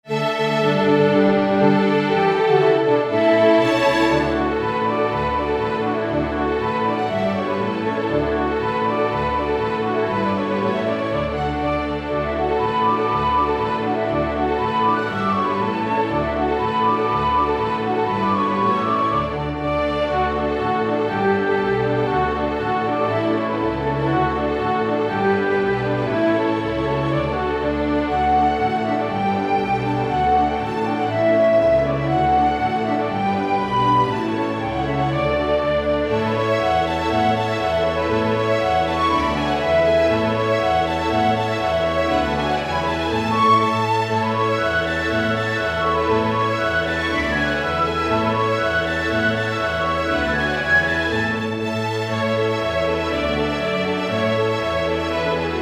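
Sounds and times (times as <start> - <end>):
hoedown flute melody: 0.0 - 55.6.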